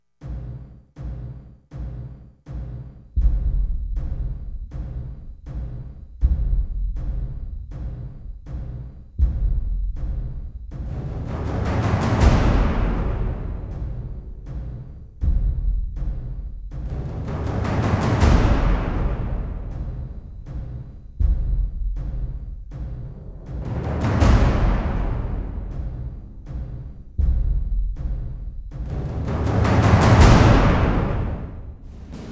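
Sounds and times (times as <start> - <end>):
drums: 0.2 - 32.3.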